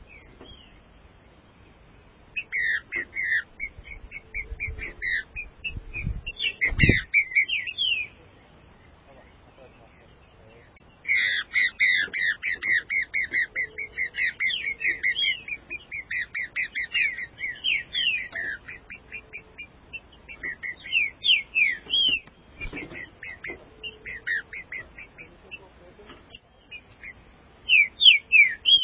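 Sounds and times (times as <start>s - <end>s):
green-winged saltator singing: 2.4s - 8.2s, 10.7s - 25.3s, 26.3s - 28.8s.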